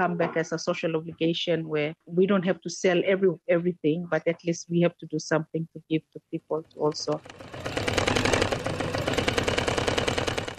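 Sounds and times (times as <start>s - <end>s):
speech: 0.0s - 7.8s
sewing machine running: 6.9s - 10.5s.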